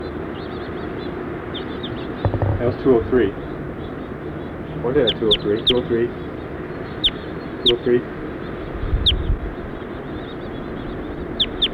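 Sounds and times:
house finches chirping and warbling: 0.5s - 11.7s
loud steady low rumble: 2.3s - 3.5s
speech: 2.6s - 3.4s, 4.8s - 6.2s, 7.6s - 8.2s.

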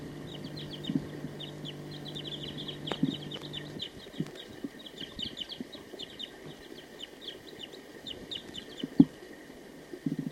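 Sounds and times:
low droning tone: 0.0s - 5.5s
wild bird chirping: 0.0s - 9.1s
faint hum: 0.0s - 10.2s.

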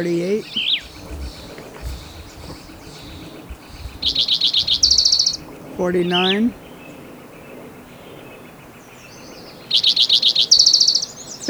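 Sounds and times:
speech: 0.0s - 1.2s, 4.0s - 4.8s, 5.8s - 6.6s
Spotted Towhee song: 0.4s - 11.4s
background hiss: 0.5s - 7.1s.

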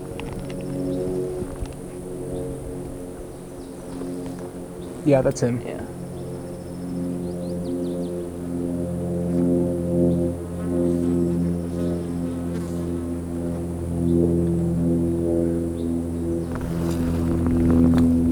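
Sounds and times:
airplane flying overhead: 0.0s - 18.3s
speech: 5.0s - 5.8s.

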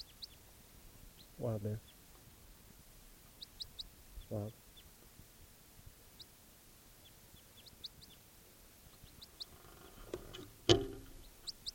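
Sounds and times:
bird chirping: 0.0s - 11.7s
low hiss: 0.0s - 11.7s
speech: 1.4s - 1.9s, 4.3s - 4.6s
sharp thump: 10.6s - 11.2s.

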